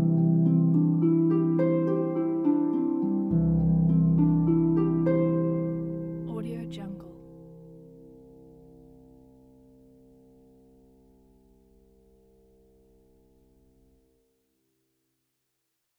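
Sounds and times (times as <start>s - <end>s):
relaxing harp and piano background music: 0.0s - 7.9s.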